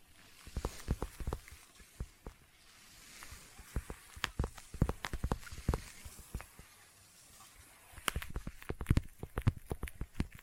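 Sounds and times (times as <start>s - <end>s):
intense sticky tapping: 3.8s - 6.5s, 8.1s - 10.4s.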